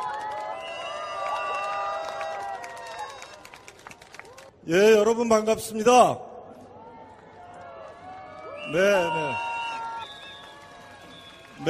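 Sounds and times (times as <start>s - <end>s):
audience applause: 0.0s - 4.6s, 7.4s - 11.6s
speech: 4.7s - 6.3s, 8.7s - 9.5s.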